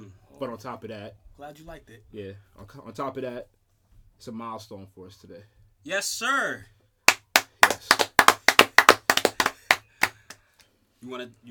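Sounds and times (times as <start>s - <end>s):
speech: 0.4s - 3.6s, 4.2s - 6.8s, 11.0s - 11.4s
hand clapping: 7.1s - 10.7s.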